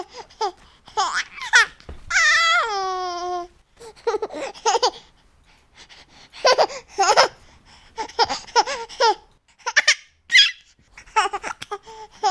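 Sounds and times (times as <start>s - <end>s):
human baby laughing: 0.0s - 5.0s, 6.4s - 7.4s, 8.0s - 12.3s.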